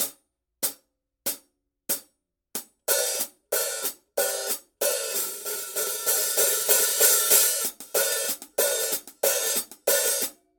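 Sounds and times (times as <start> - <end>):
Paiste 13 PST 3 hi-hat cymbals: 2.9 - 10.3.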